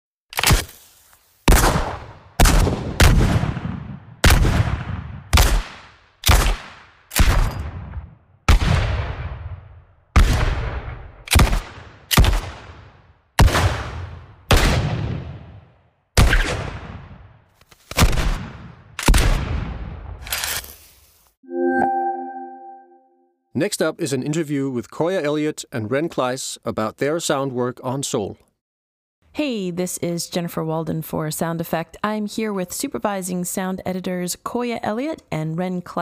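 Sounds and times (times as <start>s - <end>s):
19th century Wild West black powder revolver, rifle and carbine gunshots: 1.5s - 9.5s, 10.2s - 15.4s, 16.2s - 17.1s, 17.9s - 19.7s
electronic tone pattern: 21.5s - 23.2s
speech: 23.6s - 28.5s, 29.4s - 35.9s.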